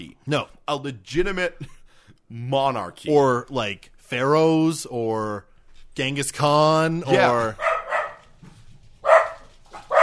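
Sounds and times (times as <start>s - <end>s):
speech: 0.0s - 7.7s
dogs barking: 7.1s - 8.4s, 9.0s - 10.0s.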